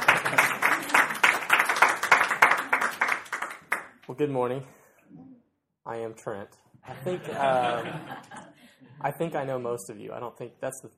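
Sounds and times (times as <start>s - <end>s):
room of people applauding a speaker: 0.0s - 4.1s
speech: 4.2s - 4.8s, 5.9s - 8.4s, 9.0s - 10.9s
laughter: 6.8s - 9.8s.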